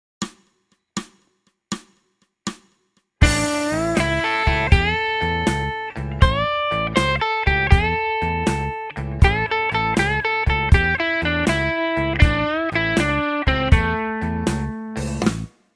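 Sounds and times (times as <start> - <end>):
blues music: 3.2 - 15.5.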